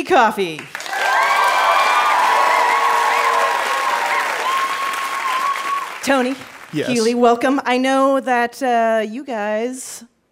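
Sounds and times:
speech: 0.0s - 0.8s, 6.0s - 10.1s
game show audience clapping as contestants are welcomed: 0.0s - 7.4s
game show audience whoops and shrill cheers: 0.8s - 7.0s.

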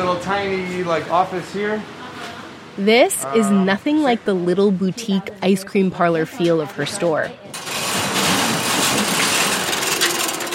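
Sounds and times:
speech: 0.0s - 2.0s, 2.8s - 7.5s
metal garage door opening: 7.5s - 10.5s.

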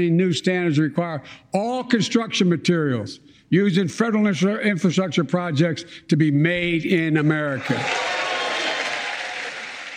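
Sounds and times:
speech: 0.0s - 8.2s
applause after a speech line: 7.6s - 9.9s.

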